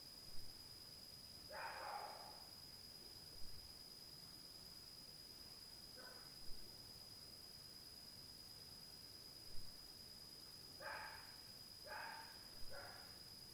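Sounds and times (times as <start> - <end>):
dog barking faintly at night: 1.5 - 2.5, 6.0 - 6.4, 10.8 - 13.2.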